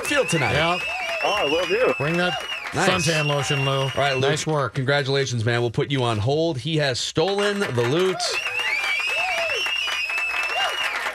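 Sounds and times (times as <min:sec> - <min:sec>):
whoops and shouted voices: 0:00.0 - 0:04.3, 0:08.0 - 0:11.1
crowd applause and cheering sound effect: 0:00.0 - 0:04.9, 0:07.2 - 0:11.1
speech: 0:00.1 - 0:08.5.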